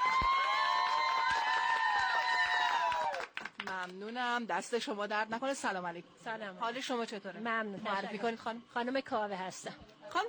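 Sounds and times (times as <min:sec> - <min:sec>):
crowd cheering with high-pitched whoops: 0:00.0 - 0:03.4
scattered clapping: 0:00.0 - 0:04.0
speech: 0:03.8 - 0:10.2.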